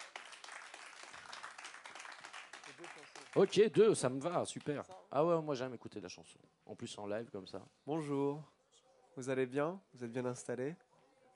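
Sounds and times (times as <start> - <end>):
audience applause: 0.0 - 3.7
speech: 2.7 - 8.6, 9.2 - 10.9.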